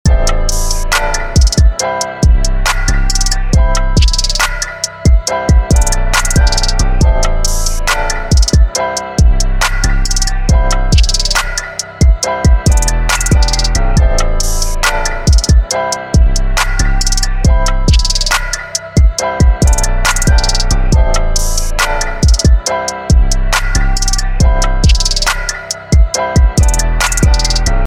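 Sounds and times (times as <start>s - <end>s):
epic music: 0.1s - 27.8s.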